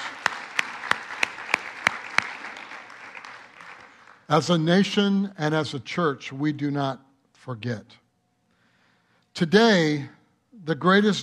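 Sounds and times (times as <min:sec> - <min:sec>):
audience applause: 0:00.0 - 0:04.3
speech: 0:04.3 - 0:08.0, 0:09.4 - 0:11.2.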